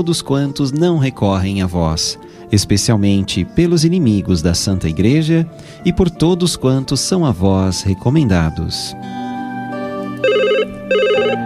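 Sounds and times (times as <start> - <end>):
speech: 0.0 - 9.2
telephone bell ringing: 10.2 - 11.4.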